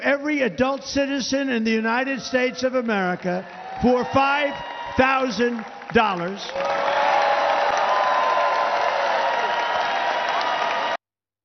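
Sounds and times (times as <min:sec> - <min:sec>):
speech: 0:00.3 - 0:07.1
crowd cheering and applauding: 0:02.0 - 0:11.0.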